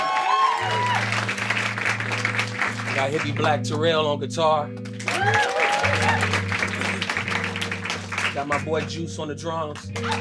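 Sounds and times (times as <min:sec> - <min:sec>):
person whooping: 0:00.0 - 0:01.2, 0:05.1 - 0:06.9
audience clapping: 0:00.0 - 0:04.0, 0:04.8 - 0:09.0, 0:09.7 - 0:10.2
soft keyboard chords: 0:00.6 - 0:10.2
speech: 0:03.0 - 0:05.6, 0:08.4 - 0:10.2.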